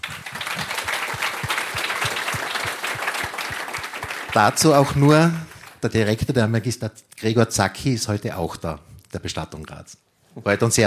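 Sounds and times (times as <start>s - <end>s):
audience applause: 0.0s - 5.8s
speech: 4.4s - 10.8s.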